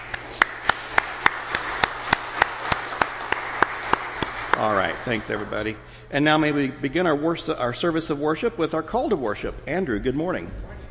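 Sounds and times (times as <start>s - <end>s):
audience applause: 0.0s - 5.5s
speech: 4.6s - 10.7s.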